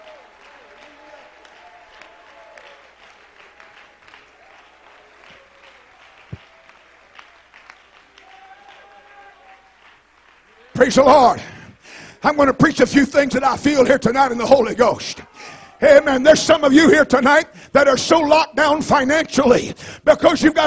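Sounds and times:
audience clapping hands: 0:00.0 - 0:12.0
speech: 0:10.8 - 0:11.5, 0:12.2 - 0:15.2, 0:15.8 - 0:20.6.

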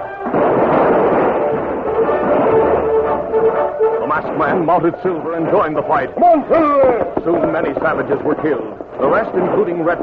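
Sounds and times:
gunfire: 0:00.0 - 0:10.0
speech: 0:04.1 - 0:10.0.

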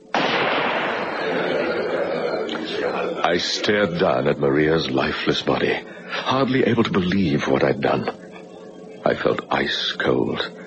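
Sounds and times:
gunshot: 0:00.1 - 0:01.2
laughter: 0:00.7 - 0:07.0
speech: 0:02.8 - 0:08.2, 0:09.0 - 0:10.6.

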